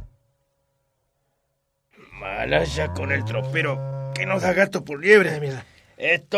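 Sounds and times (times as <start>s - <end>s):
steers lowing in a slaughterhouse: 2.1s - 5.7s
speech: 2.5s - 6.3s.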